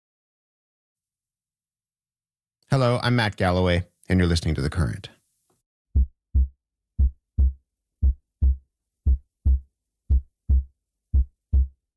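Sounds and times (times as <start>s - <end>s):
speech: 2.7s - 5.2s
human heartbeat: 6.0s - 11.8s.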